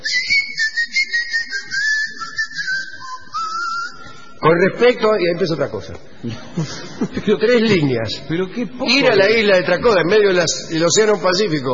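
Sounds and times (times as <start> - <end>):
whistling: 0.0 - 4.4
speech: 4.4 - 11.7
laughter: 6.2 - 8.0.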